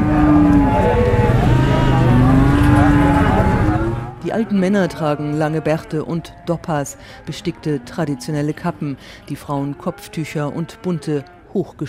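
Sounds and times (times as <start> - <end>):
engine noise: 0.0 - 4.2
crowd hubbub: 0.0 - 9.5
cows mooing at a weekly livestock market outside Kashgar: 0.0 - 11.5
speech: 4.4 - 11.8.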